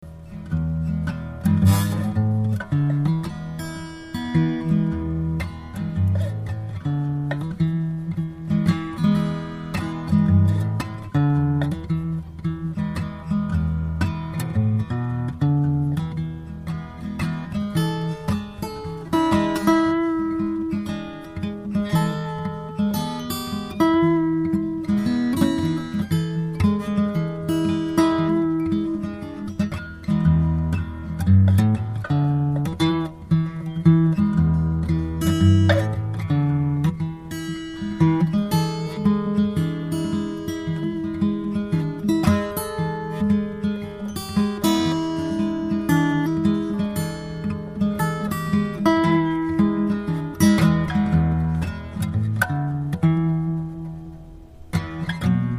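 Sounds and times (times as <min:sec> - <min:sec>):
guitar noodling: 0:00.4 - 0:55.5.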